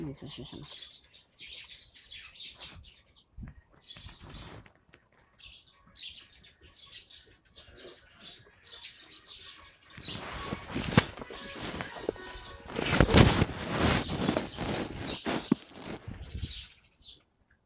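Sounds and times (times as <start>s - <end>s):
Eurasian tree sparrows chirping: 0.0s - 17.6s
speech: 0.1s - 1.6s
soft rustles: 3.9s - 5.2s, 10.0s - 16.6s.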